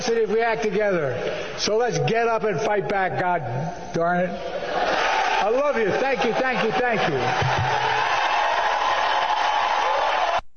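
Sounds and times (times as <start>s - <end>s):
speech: 0.1s - 4.6s, 5.4s - 7.8s
crowd cheering and applauding at the close of a political speech: 4.7s - 10.4s.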